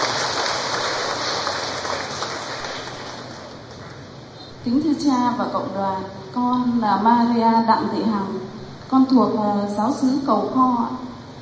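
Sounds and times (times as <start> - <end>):
crowd clapping: 0.0 - 4.0
speech: 4.6 - 11.1.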